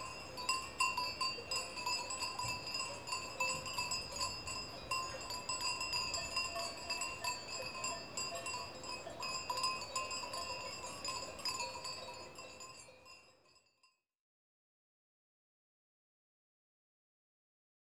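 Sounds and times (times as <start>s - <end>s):
small cowbells in Switzerland: 0.0s - 14.1s.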